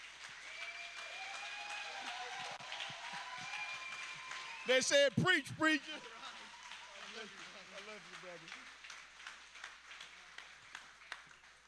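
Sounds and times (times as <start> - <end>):
large crowd clapping: 0.0 - 11.6
faint cheers: 0.4 - 7.3
speech: 4.7 - 6.1, 8.0 - 8.8.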